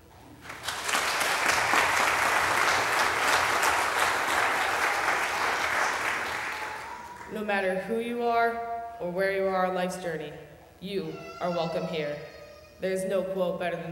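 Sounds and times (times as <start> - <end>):
audience applause: 0.4 - 7.3
speech: 7.5 - 13.8.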